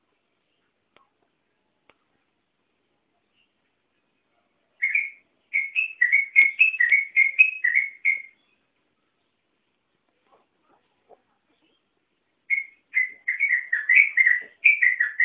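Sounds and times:
Oriental magpie-robin singing whistled notes: 4.8 - 8.6, 12.5 - 15.2.

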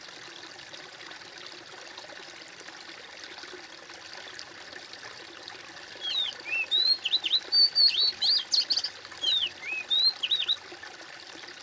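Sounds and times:
bird singing high twisting whistled chirps: 6.0 - 10.6.

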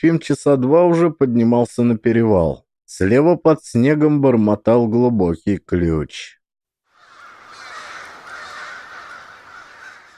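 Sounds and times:
speech: 0.0 - 6.4
crows cawing in alarm: 6.9 - 10.1.

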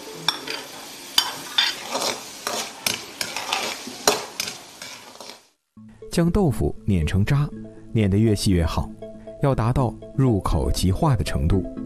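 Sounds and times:
diced vegetables stir-frying in hot oil: 0.0 - 5.6
speech: 6.2 - 11.8.

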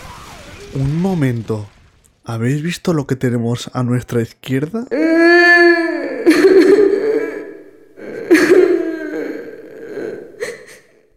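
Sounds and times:
speech: 0.7 - 5.3
girl crying, zombie game witch: 4.9 - 11.0.

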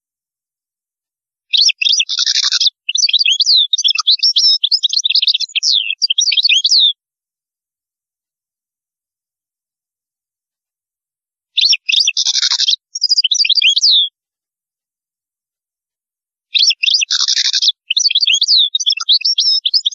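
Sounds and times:
European goldfinch song: 1.5 - 7.0, 11.6 - 14.1, 16.6 - 19.9.

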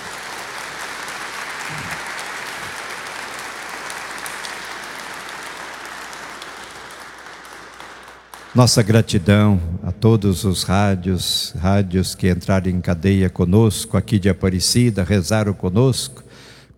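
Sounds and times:
congregation applauding honoring Our Lady at Aparecida: 0.0 - 9.6
speech: 8.6 - 16.2.

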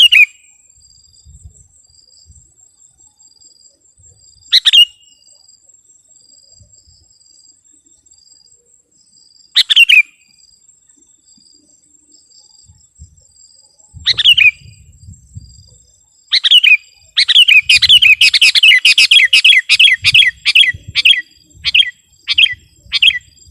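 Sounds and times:
Sooty-headed bulbul song: 0.0 - 0.6, 4.5 - 5.4, 9.6 - 10.4, 13.9 - 15.0, 16.3 - 23.4.

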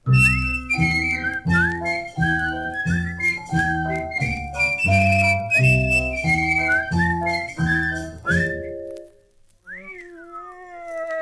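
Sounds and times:
person whistling a tune: 0.1 - 8.9, 9.7 - 11.1.

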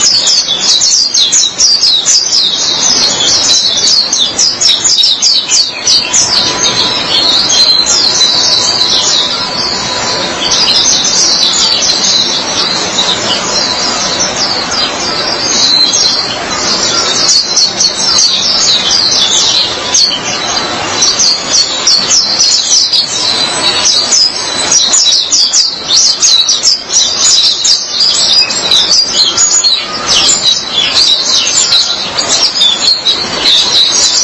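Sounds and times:
white-eye high twittering song: 0.0 - 34.2.

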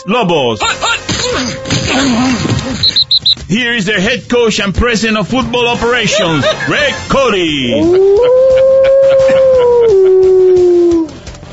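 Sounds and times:
speech: 0.0 - 9.4
laughter: 5.7 - 10.9
Lobo wolf howl sound effect: 7.7 - 11.2.

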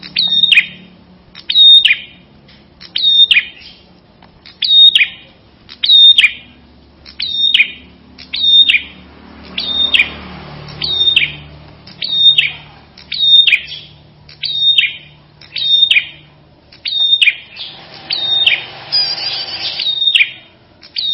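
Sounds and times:
Ashy tailorbird singing: 0.0 - 21.1.

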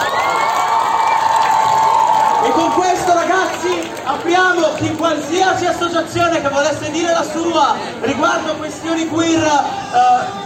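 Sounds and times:
crowd applause: 0.0 - 5.3
speech: 2.5 - 10.4.

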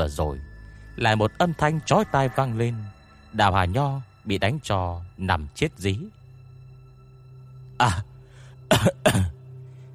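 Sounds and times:
speech: 0.0 - 6.2, 7.8 - 8.1, 8.7 - 9.4
man coughing persistently: 8.7 - 9.4.

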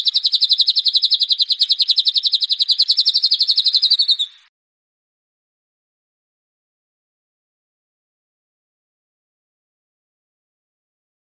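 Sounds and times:
white-rumped shama rapid trill: 0.0 - 4.5.

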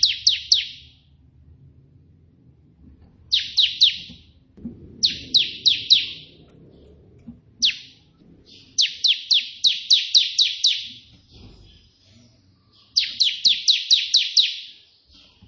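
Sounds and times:
prinia singing buzzy notes: 3.3 - 4.1, 5.0 - 6.3, 7.6 - 15.2.

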